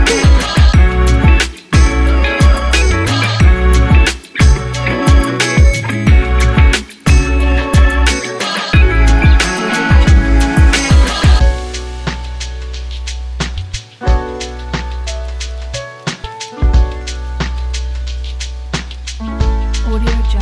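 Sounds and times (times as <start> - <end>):
lofi hip hop beat: 0.0 - 20.4.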